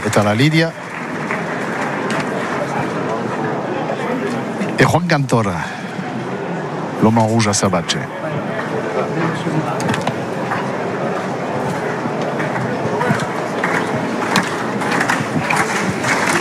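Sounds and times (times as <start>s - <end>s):
crowd applauding at bullring: 0.0s - 5.4s, 7.9s - 16.3s
speech: 0.2s - 0.8s, 4.8s - 5.8s, 7.0s - 8.5s, 9.2s - 10.0s.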